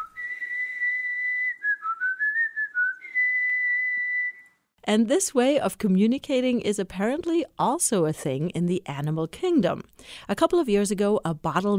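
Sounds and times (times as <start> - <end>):
mother's special calling whistle: 0.0 - 4.6
speech: 4.9 - 11.7.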